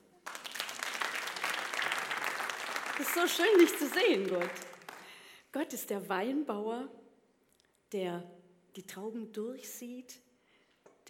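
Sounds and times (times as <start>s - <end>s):
audience applause: 0.0s - 5.1s
speech: 3.0s - 4.7s, 5.5s - 7.0s, 7.9s - 10.2s.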